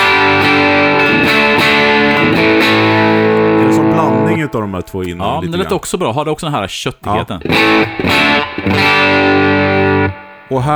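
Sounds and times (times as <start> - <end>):
electric guitar through an LED-clipping distortion pedal playing chords: 0.0 - 4.6, 7.4 - 10.7
speech: 4.5 - 10.7.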